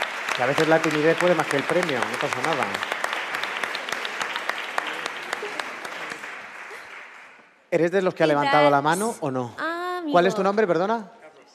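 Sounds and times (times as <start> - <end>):
audience applause: 0.0 - 7.6
speech: 0.4 - 3.0, 7.7 - 11.5.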